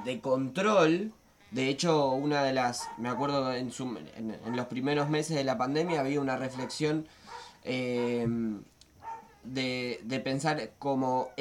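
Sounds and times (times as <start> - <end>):
speech: 0.0 - 8.7, 9.4 - 11.4
dog barking in a drawn-out whining tonal bark: 2.7 - 3.5, 4.4 - 4.8, 5.7 - 8.3, 9.0 - 9.5.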